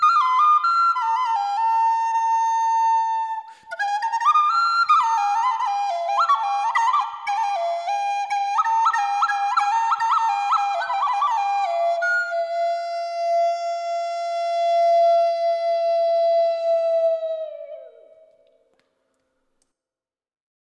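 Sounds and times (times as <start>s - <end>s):
pipeau playing the note F: 0.0s - 18.6s.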